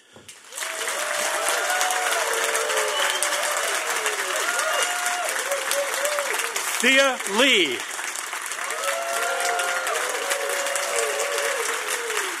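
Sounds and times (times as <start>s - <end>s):
audience applause: 0.3s - 12.3s
speech: 6.8s - 7.9s.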